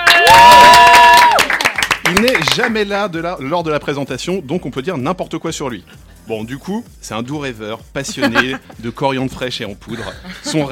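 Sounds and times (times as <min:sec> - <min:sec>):
high whistle or whoop: 0:00.0 - 0:01.5
audience applause: 0:00.0 - 0:02.7
speech: 0:02.6 - 0:10.7
laughter: 0:08.0 - 0:08.7, 0:09.9 - 0:10.7.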